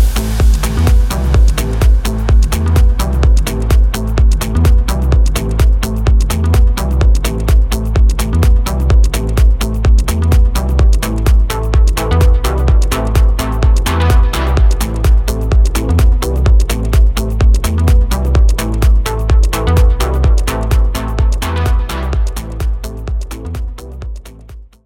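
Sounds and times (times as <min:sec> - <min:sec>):
minimal tech house music: 0:00.0 - 0:24.8.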